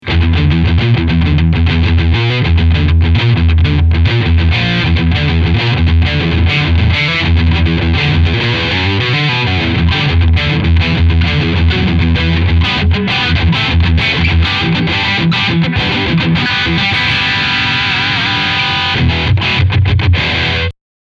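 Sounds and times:
scooped riff: 0.0s - 20.7s.

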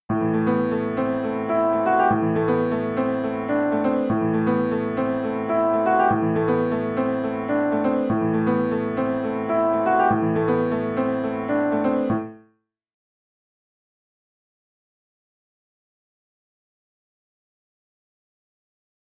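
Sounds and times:
pianos: 0.1s - 12.4s.

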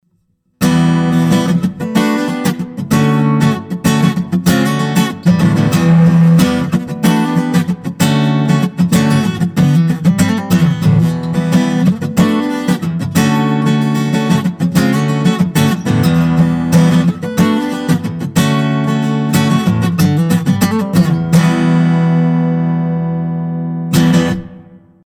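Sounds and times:
Ibanez AW54 dreadnought acoustic guitar played percussively: 0.6s - 25.0s.

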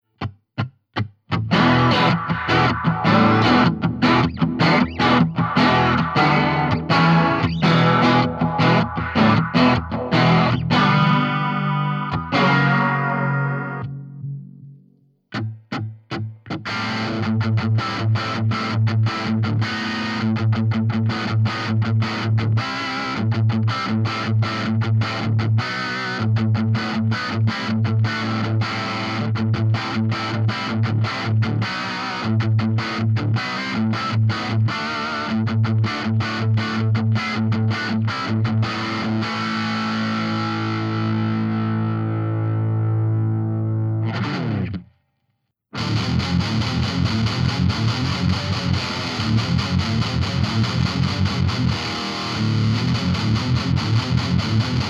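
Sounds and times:
Fender guitar through Line6 miked with MD421: 0.2s - 45.0s, 45.7s - 54.8s.

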